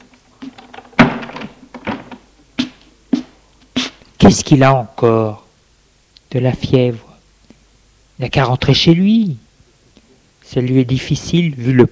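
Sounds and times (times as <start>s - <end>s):
door swinging shut: 0.5s - 2.2s
speech: 4.3s - 5.4s, 6.3s - 7.1s, 8.2s - 9.4s, 10.5s - 11.9s.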